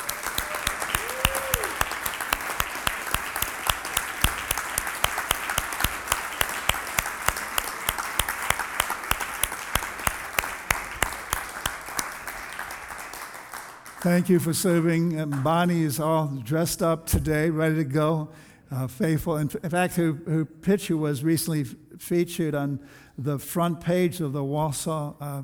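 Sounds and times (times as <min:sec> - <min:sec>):
audience applause: 0:00.0 - 0:14.2
speech: 0:14.1 - 0:25.4.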